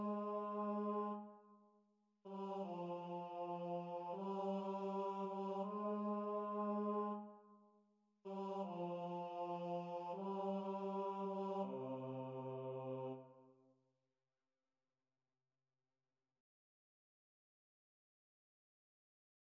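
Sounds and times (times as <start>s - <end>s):
bass choir singing: 0.0s - 1.2s, 2.3s - 7.2s, 8.3s - 13.3s.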